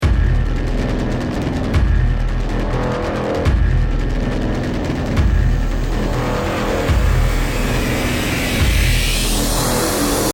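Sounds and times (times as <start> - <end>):
music: 0.0 - 10.3.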